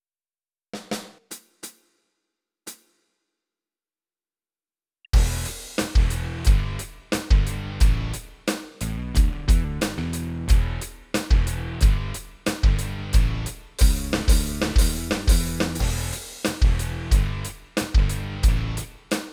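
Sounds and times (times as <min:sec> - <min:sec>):
Yamaha Rock2 training music: 0:05.2 - 0:19.0.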